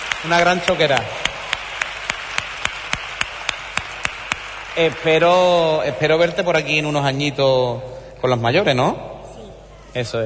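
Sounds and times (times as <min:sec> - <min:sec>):
audience applause: 0:00.0 - 0:05.8
speech: 0:00.2 - 0:01.2, 0:04.8 - 0:09.1, 0:10.0 - 0:10.2.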